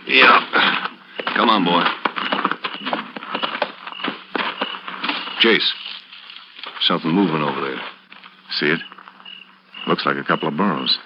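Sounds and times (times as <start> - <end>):
speech: 0.1 - 0.4, 1.4 - 2.0, 5.4 - 5.9, 6.8 - 7.9, 8.6 - 8.9, 9.9 - 11.0
horses' hooves clip-clopping at night as riders halt near mesquite: 0.1 - 8.3.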